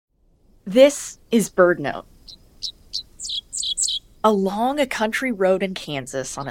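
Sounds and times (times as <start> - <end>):
speech: 0.7 - 2.8, 4.2 - 6.4
Dickcissel song: 1.1 - 4.4.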